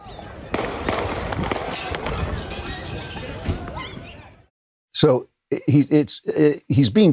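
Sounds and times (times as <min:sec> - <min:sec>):
gunshots in a played video clip: 0:00.5 - 0:02.7
speech: 0:05.0 - 0:07.1.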